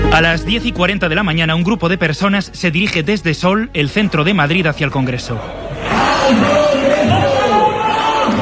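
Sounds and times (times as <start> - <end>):
speech: 0.2 - 7.2
crowd of protesters shouting: 5.4 - 8.4.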